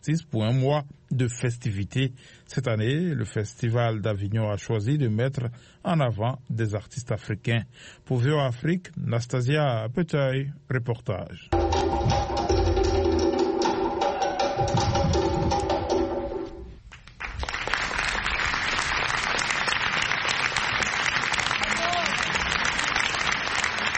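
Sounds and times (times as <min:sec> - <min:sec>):
speech: 0:00.0 - 0:12.4
crowd cheering and applauding: 0:11.6 - 0:15.7, 0:16.9 - 0:23.9.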